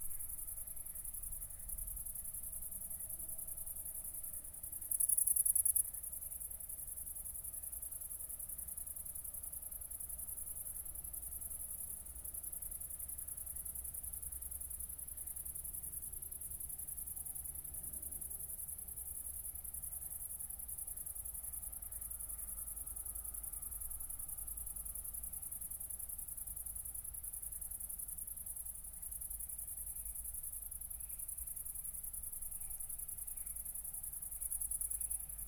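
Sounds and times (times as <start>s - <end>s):
cricket chirping: 0.0s - 35.4s.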